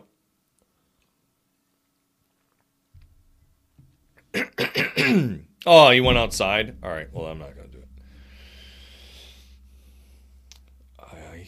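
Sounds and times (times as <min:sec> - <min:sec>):
throat clearing: 0:04.4 - 0:05.4
speech: 0:04.4 - 0:07.9.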